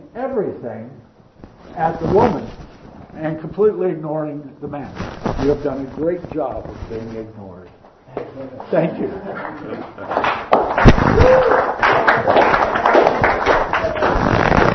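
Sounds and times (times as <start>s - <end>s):
speech: 0.1s - 1.1s, 1.7s - 2.6s, 3.2s - 12.9s
thunderous applause: 10.1s - 14.6s.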